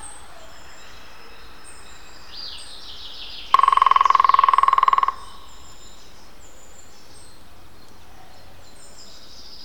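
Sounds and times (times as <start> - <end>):
European green woodpecker drumming: 3.4 - 5.8.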